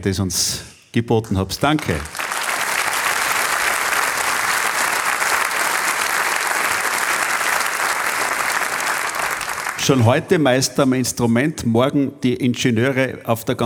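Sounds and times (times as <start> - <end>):
speech: 0.0 - 2.2, 9.9 - 13.6
hall audience applause: 1.6 - 10.2.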